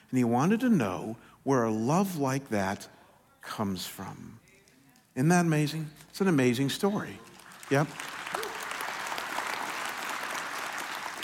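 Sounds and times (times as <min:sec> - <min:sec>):
speech: 0:00.1 - 0:04.4, 0:05.2 - 0:08.2
audience clapping: 0:06.9 - 0:11.2.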